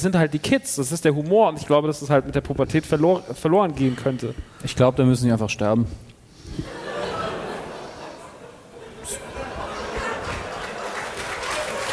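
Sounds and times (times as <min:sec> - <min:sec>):
speech: 0:00.0 - 0:06.8
scattered laughter: 0:06.6 - 0:11.5
crowd applause: 0:09.1 - 0:11.9.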